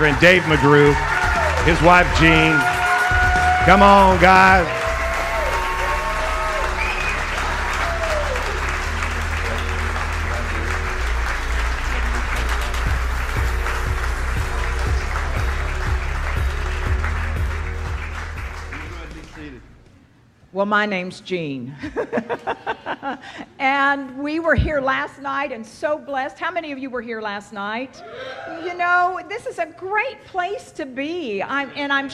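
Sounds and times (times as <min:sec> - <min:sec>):
speech: 0:00.0 - 0:02.7, 0:03.6 - 0:04.8, 0:20.7 - 0:32.1
crowd voices: 0:00.0 - 0:16.9
congregation applauding and cheering a guest speaker: 0:00.0 - 0:19.6
low sustained musical tones: 0:00.0 - 0:19.8
laughter: 0:21.8 - 0:23.6.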